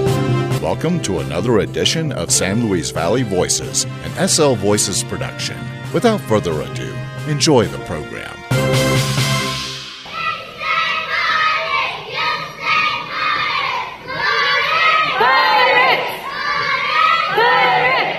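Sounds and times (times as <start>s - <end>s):
speech: 0.6s - 9.1s
youth cheerleaders performing a cheer: 10.0s - 18.1s.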